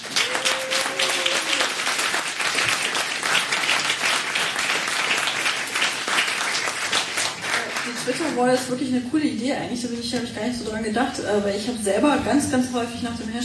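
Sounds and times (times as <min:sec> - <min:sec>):
audience applause: 0:00.0 - 0:08.6
speech: 0:08.4 - 0:13.4.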